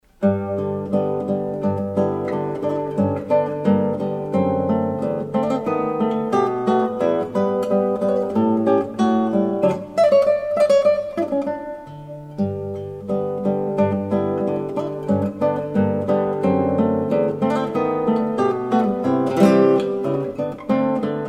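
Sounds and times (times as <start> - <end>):
allegretto guitar piece: 0.0 - 21.2.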